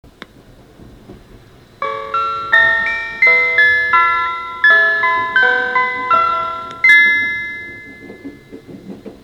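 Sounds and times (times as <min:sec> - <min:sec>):
chime: 0:01.8 - 0:08.5.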